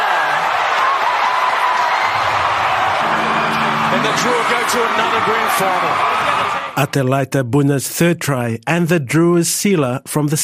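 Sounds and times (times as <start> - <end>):
large stadium crowd cheering: 0.0 - 7.1
speech: 4.2 - 10.4.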